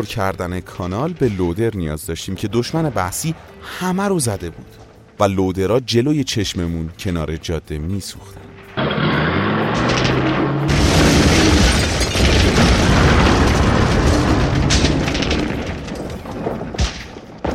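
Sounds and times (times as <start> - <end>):
speech: 0.0 - 9.0
explosions of heavy artillery fire: 8.7 - 17.5.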